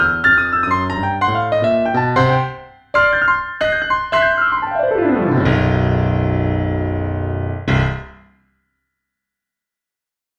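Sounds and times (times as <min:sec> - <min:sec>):
blues music: 0:00.0 - 0:08.2.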